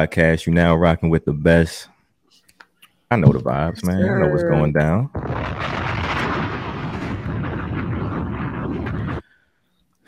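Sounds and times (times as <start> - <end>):
speech: 0.0 - 1.9, 3.1 - 5.8
bomb explosion sound effect: 5.0 - 9.3.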